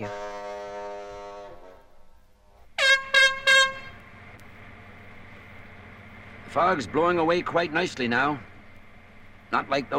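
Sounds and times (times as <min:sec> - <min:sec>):
boat whistle toots: 0:00.0 - 0:01.9, 0:02.8 - 0:04.0
speech: 0:06.5 - 0:08.5, 0:09.5 - 0:09.9.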